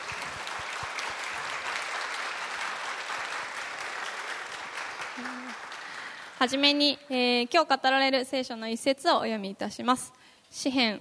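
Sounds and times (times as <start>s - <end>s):
audience applauding: 0.0s - 6.4s
speech: 6.4s - 10.9s.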